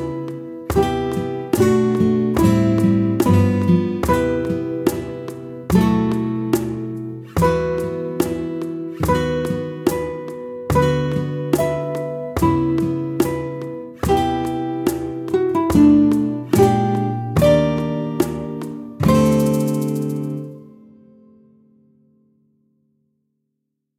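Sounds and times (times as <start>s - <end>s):
background music: 0.0s - 21.0s.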